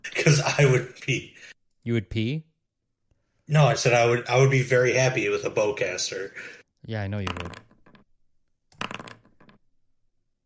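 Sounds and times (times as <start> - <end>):
speech: 0.2 - 2.5, 3.5 - 7.7
many dice rolled for a tabletop game's loot table: 7.3 - 8.0, 8.8 - 9.6.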